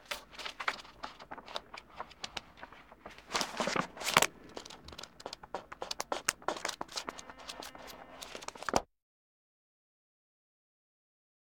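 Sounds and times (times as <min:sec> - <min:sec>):
pages of a phone book turning: 0:00.0 - 0:08.8.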